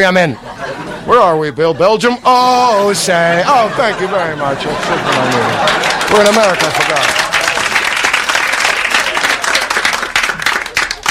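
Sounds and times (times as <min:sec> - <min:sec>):
speech: 0:00.0 - 0:07.3
laughter: 0:00.1 - 0:08.1
stadium crowd clapping during anthem: 0:04.5 - 0:11.0.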